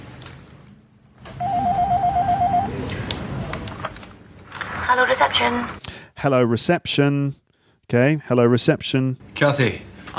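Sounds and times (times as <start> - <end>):
telephone picked up: 1.3 - 2.7
speech: 4.9 - 10.1.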